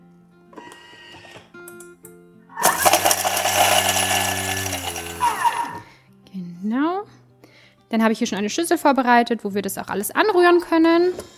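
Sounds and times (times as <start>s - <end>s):
electric food chopper chopping parsley and garlic: 2.6s - 5.9s
speech: 7.9s - 11.3s.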